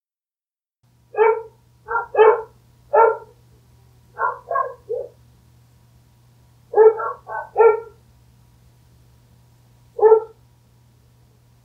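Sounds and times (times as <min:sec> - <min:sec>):
dog barking: 0:01.1 - 0:03.4, 0:04.2 - 0:05.2, 0:06.7 - 0:08.0, 0:10.0 - 0:10.4.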